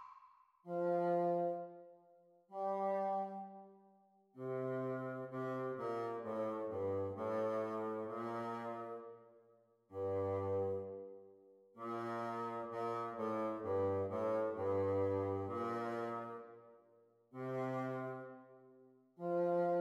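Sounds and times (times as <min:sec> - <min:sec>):
bassoon duet: 0:00.7 - 0:01.8, 0:02.5 - 0:03.7, 0:04.4 - 0:09.1, 0:09.9 - 0:11.2, 0:11.8 - 0:16.5, 0:17.4 - 0:18.6, 0:19.2 - 0:19.7.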